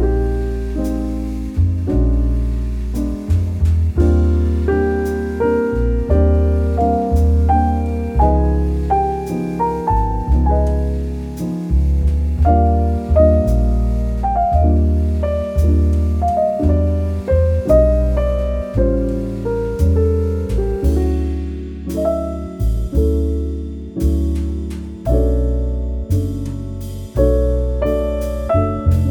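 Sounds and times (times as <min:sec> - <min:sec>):
slow cozy relaxing melodic jazz: 0:00.0 - 0:29.0.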